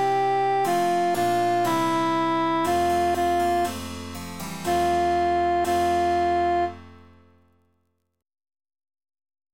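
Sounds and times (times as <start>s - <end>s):
emphasized cantus melody: 0.0s - 7.2s.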